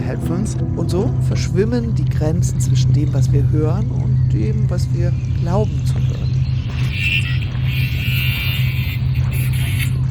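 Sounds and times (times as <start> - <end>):
speech: 0.1 - 6.2
angle grinder grinding: 6.0 - 10.0.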